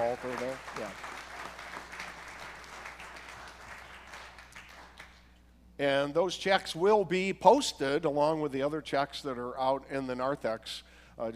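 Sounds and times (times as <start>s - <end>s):
speech: 0.0s - 1.1s, 5.8s - 11.3s
audience round of applause: 0.0s - 5.2s.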